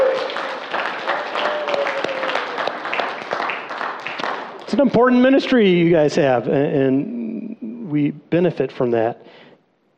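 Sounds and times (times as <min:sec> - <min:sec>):
church audience clapping: 0:00.0 - 0:05.3
speech: 0:04.7 - 0:07.2, 0:07.9 - 0:09.4.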